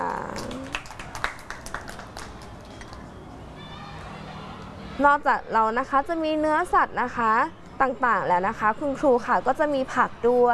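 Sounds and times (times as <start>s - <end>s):
children clapping: 0.0s - 3.1s
speech: 5.0s - 10.5s.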